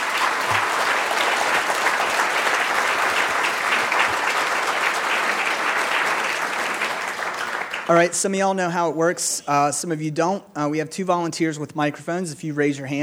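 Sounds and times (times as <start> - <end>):
audience applause: 0.0 - 8.1
speech: 7.9 - 13.0.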